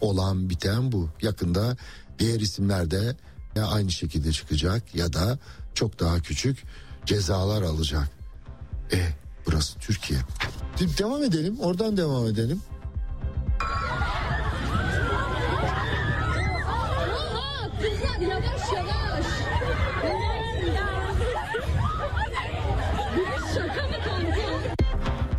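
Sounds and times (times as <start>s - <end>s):
speech: 0.0s - 8.2s, 8.9s - 12.7s
crowd shouting and yelling: 13.6s - 24.8s
laughter: 13.8s - 20.2s, 20.8s - 24.8s.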